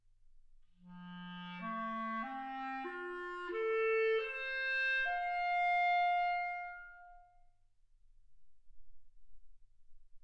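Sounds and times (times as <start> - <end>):
clarinet: 0.8 - 7.5.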